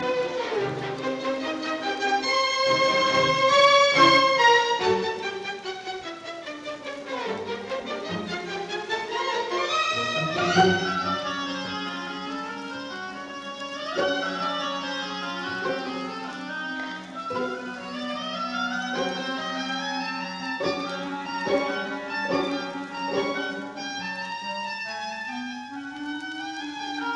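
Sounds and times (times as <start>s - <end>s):
symphony movement in E flat major, Allegretto: 0.0s - 27.1s.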